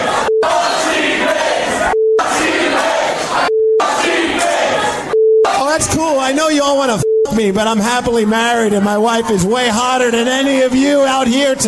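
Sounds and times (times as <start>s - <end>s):
crowd booing: 0.0s - 6.0s
brief steady beep tone: 0.1s - 0.8s, 1.8s - 2.4s, 3.4s - 4.0s, 5.1s - 5.8s, 6.8s - 7.6s
speech: 5.8s - 11.6s.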